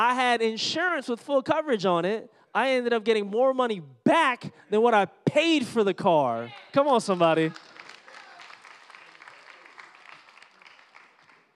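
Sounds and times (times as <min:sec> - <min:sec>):
speech: 0:00.0 - 0:07.7
audience applause and clapping: 0:07.2 - 0:11.5.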